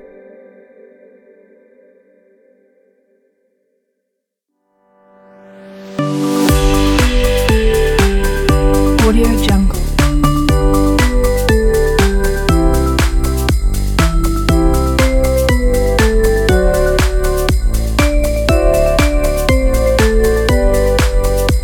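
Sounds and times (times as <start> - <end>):
Christmas dance music: 5.7 - 21.6.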